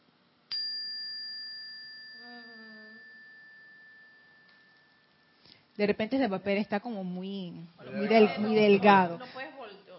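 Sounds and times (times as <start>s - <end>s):
bell struck without paper damping, high pure ringing tone: 0.5s - 5.4s
speech: 5.8s - 9.5s.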